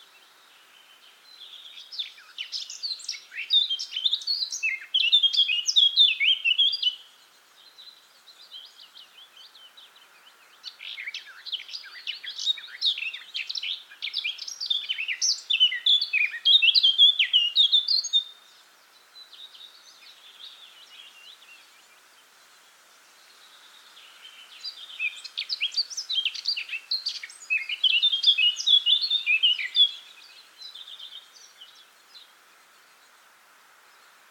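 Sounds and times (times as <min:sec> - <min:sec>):
Eurasian blackcap singing: 0:01.4 - 0:07.0, 0:10.6 - 0:18.4, 0:24.6 - 0:31.8.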